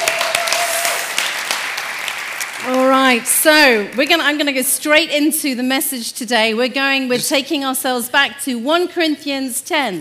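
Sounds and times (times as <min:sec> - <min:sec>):
audience applause: 0:00.0 - 0:03.3
speech: 0:03.1 - 0:09.9.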